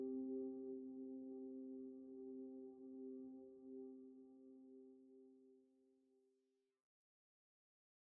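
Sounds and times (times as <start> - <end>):
ambient music bed with beat: 0.0 - 4.9.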